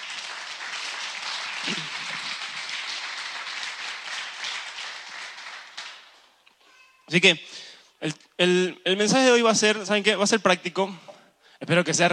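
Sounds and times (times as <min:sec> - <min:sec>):
audience applause: 0:00.0 - 0:06.3
speech: 0:07.1 - 0:12.1.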